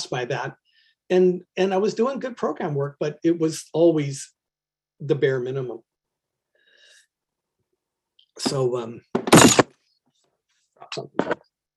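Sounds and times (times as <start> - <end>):
speech: 0.0 - 4.4, 5.0 - 5.9, 8.4 - 9.5, 10.8 - 11.4
glass breaking: 9.2 - 9.7.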